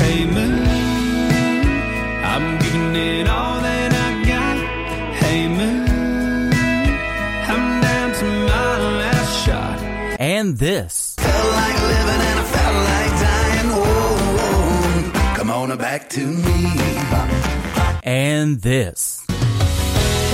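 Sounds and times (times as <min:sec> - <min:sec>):
full country band with strong bass and steady drums: 0:00.0 - 0:10.2, 0:11.2 - 0:15.5, 0:16.4 - 0:18.1
male voice singing new country music: 0:00.0 - 0:19.1
speech: 0:10.5 - 0:12.3, 0:15.6 - 0:19.2.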